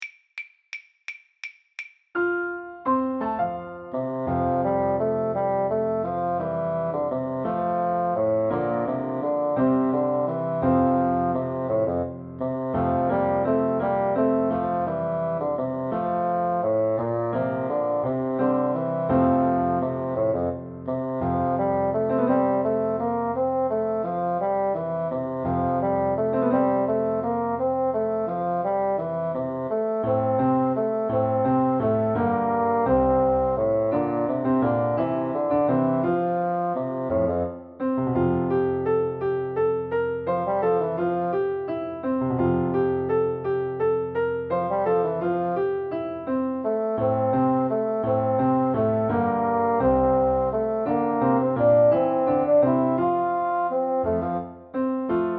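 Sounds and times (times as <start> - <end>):
piano: 2.2 - 55.3
bassoon: 3.8 - 37.8, 44.5 - 54.8.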